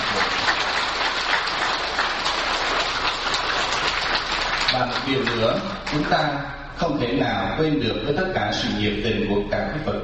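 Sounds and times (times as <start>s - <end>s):
dense applause from a large crowd: 0.0s - 6.1s
speech: 4.8s - 10.0s.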